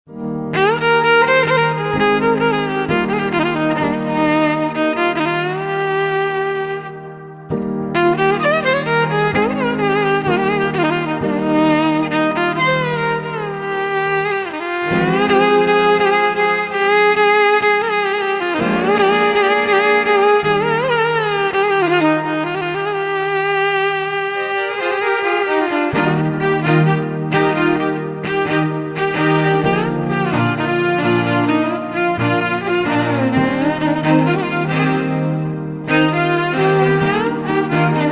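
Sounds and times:
violin: 0.1 - 38.1.

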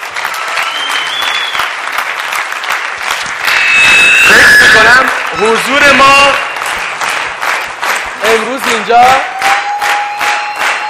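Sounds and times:
audience applause: 0.0 - 10.8
speech: 5.0 - 6.5, 8.2 - 9.3.

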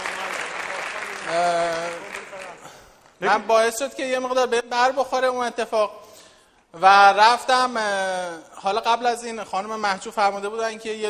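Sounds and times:
audience applause: 0.0 - 3.2
speech: 1.3 - 1.8, 3.2 - 6.0, 6.7 - 11.0.

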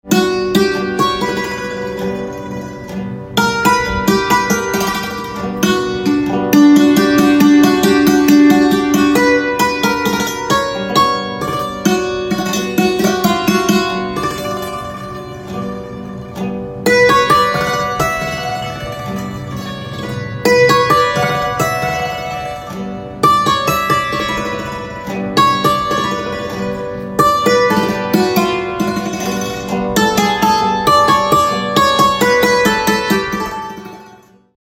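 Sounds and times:
santoor playing: 0.0 - 34.5.

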